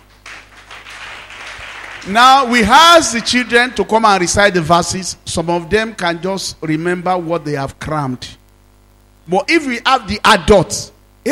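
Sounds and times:
audience clapping: 0.0s - 3.5s
speech: 2.0s - 8.4s, 9.3s - 11.2s.

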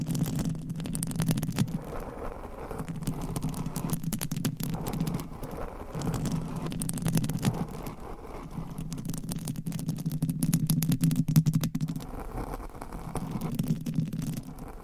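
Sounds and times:
nails scratching at a microphone cover: 0.0s - 10.9s, 11.5s - 14.8s.

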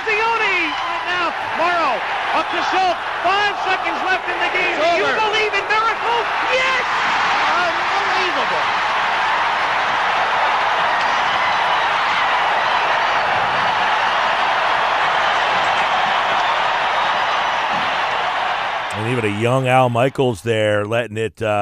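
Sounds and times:
hockey arena crowd roaring after victory: 0.0s - 20.4s
speech: 1.6s - 9.0s, 19.1s - 21.6s.

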